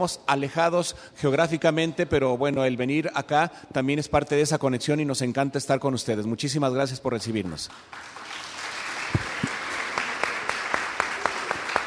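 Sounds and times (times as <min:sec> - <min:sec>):
speech: 0:00.0 - 0:08.2
audience applause: 0:07.9 - 0:11.8.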